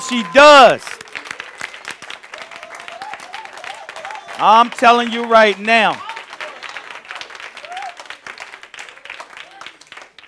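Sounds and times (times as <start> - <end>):
audience clapping: 0.0 - 10.2
speech: 0.1 - 1.0, 4.4 - 6.1.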